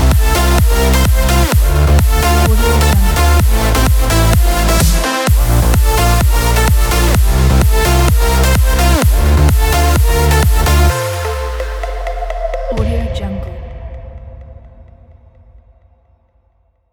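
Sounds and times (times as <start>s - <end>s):
electronic dance music: 0.0s - 13.5s.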